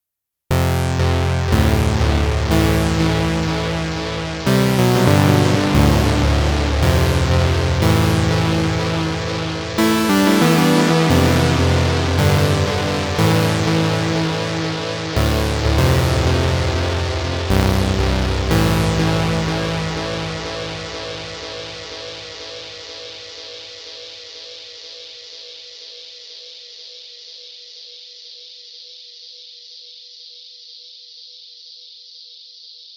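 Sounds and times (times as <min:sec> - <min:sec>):
SEM synth bass with tape echo: 0:00.5 - 0:23.5.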